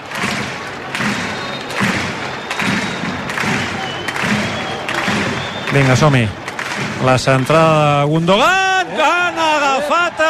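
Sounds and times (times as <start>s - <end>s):
rhythmic thuds: 0.0s - 7.9s
large stadium crowd applause: 0.0s - 10.2s
speech: 5.8s - 6.4s, 7.0s - 10.2s.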